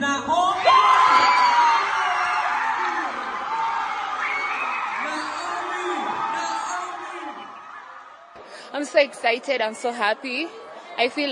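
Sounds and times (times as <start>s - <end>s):
whoops and excited voices: 0.5s - 8.0s
audience applause and cheering: 0.6s - 8.4s
speech: 8.8s - 11.3s.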